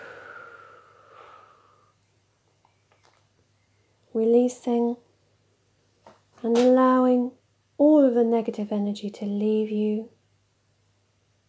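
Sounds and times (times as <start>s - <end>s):
deep breath blown out: 0.0s - 1.9s
speech: 4.2s - 5.0s, 6.4s - 10.2s.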